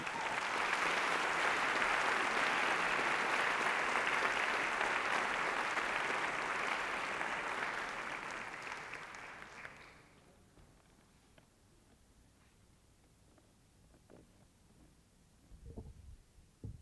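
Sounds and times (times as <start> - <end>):
concert audience applause welcoming a harp performer: 0.0 - 10.1.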